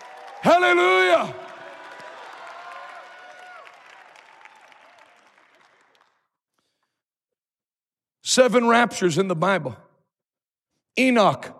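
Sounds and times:
audience clapping and shouting: 0:00.0 - 0:06.4
speech: 0:00.4 - 0:01.4, 0:08.4 - 0:09.8, 0:11.0 - 0:11.5.

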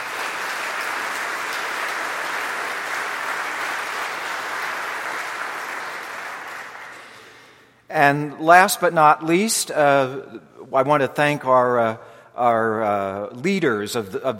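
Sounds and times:
audience applause: 0:00.0 - 0:07.5
speech: 0:07.9 - 0:14.3.

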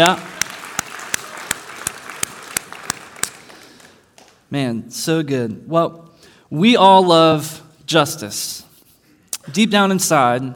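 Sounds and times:
speech: 0:00.0 - 0:00.3, 0:04.5 - 0:08.7, 0:09.5 - 0:10.5
audience applause for parents: 0:00.0 - 0:04.3.

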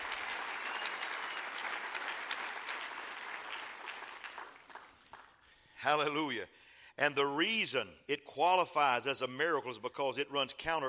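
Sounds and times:
church audience clapping hands: 0:00.0 - 0:05.6
speech: 0:05.8 - 0:10.8.

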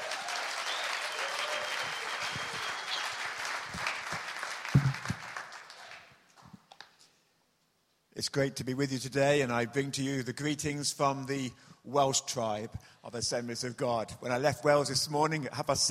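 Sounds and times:
audience applause welcoming a speaker at a church meeting: 0:00.0 - 0:06.1
speech: 0:08.2 - 0:15.8.

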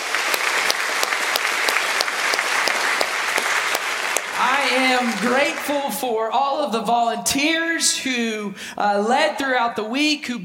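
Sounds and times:
audience applause: 0:00.0 - 0:06.0
speech: 0:04.9 - 0:10.4.

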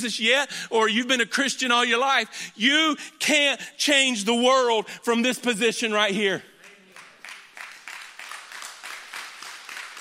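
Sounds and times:
speech: 0:00.0 - 0:06.5
small crowd clapping: 0:06.6 - 0:09.9.

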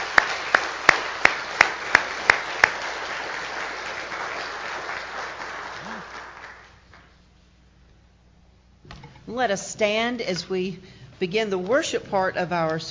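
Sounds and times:
audience applause for graduates: 0:00.0 - 0:07.0
sharp loud claps: 0:00.0 - 0:07.1
speech: 0:09.3 - 0:12.8.

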